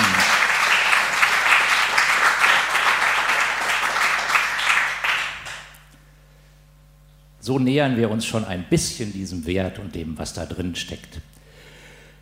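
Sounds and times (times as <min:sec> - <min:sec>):
audience applause: 0:00.0 - 0:05.8
speech: 0:07.5 - 0:11.4.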